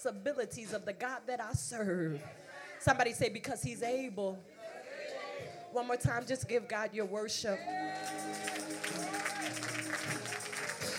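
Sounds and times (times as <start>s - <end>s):
speech: 0.0s - 4.6s, 5.7s - 8.0s
audience clapping: 8.0s - 10.9s.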